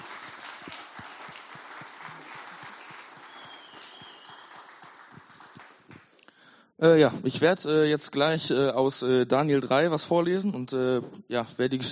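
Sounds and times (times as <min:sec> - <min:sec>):
audience applause: 0:00.0 - 0:06.2
speech: 0:06.8 - 0:11.9.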